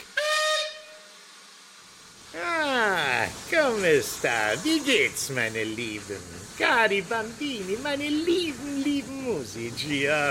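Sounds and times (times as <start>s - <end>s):
steamship steam whistle blast: 0.0s - 1.7s
speech: 3.5s - 10.2s.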